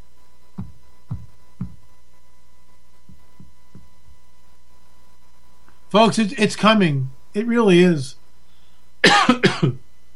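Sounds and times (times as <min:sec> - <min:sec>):
speech: 0:05.9 - 0:08.2
person coughing: 0:09.0 - 0:09.8.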